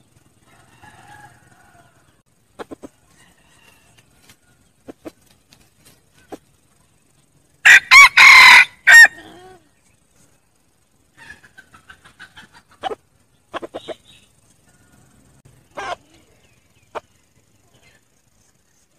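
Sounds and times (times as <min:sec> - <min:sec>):
red junglefowl crowing: 0:00.4 - 0:02.2, 0:03.1 - 0:04.6, 0:07.6 - 0:09.4.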